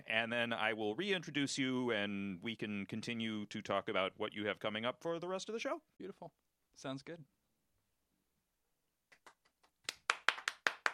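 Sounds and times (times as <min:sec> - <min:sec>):
speech: 0:00.1 - 0:07.4
one person clapping: 0:09.1 - 0:10.9.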